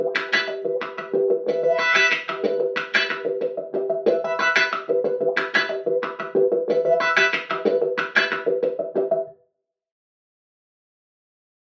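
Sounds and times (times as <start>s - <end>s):
flat electric guitar: 0.0s - 9.3s.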